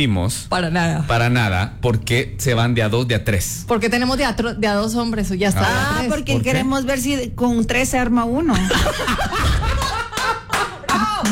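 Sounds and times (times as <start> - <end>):
speech: 0.0 - 9.6
laughter: 8.5 - 11.3
small group clapping: 9.5 - 11.3.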